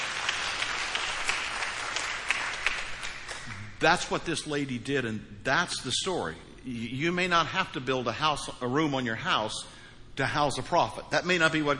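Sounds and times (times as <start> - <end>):
audience clapping: 0.0 - 3.9
speech: 3.8 - 11.7.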